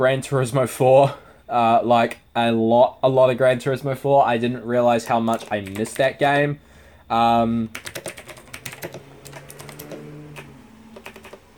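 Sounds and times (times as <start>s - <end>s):
speech: 0.0s - 8.1s
keyboard typing a message: 5.0s - 6.2s, 7.7s - 11.5s.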